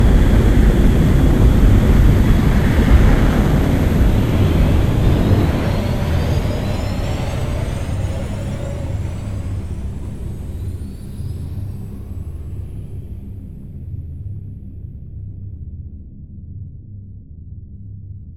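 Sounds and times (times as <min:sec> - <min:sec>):
big cargo spaceship passing by: 0:00.0 - 0:13.2.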